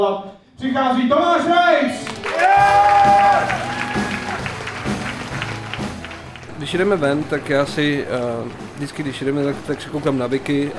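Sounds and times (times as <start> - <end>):
speech: 0.0 - 3.6, 6.6 - 10.7
audience applause: 2.0 - 10.6.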